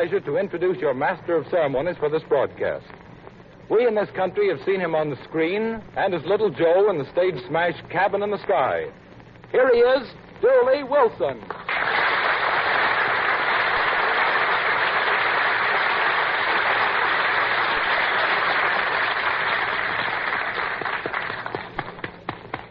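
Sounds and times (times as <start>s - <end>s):
speech: 0.0s - 3.0s, 3.7s - 12.0s
crowd applauding: 11.5s - 22.6s.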